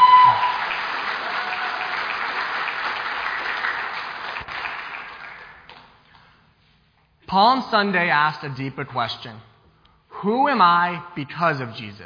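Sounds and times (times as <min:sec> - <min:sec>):
audience applause for a student: 0:00.0 - 0:05.7
speech: 0:07.3 - 0:09.5, 0:10.2 - 0:12.0.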